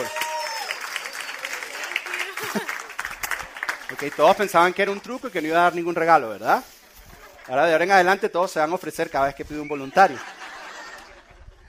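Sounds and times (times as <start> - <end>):
scattered voices and cheers: 0.0 - 4.0
audience applause: 0.0 - 5.1
laughter: 1.0 - 11.6
speech: 2.5 - 2.8, 3.9 - 6.8, 7.5 - 10.4.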